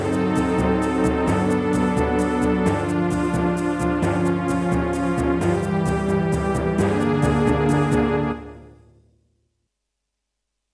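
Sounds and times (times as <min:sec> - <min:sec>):
wavetable synthesizer sound card: 0:00.0 - 0:08.7.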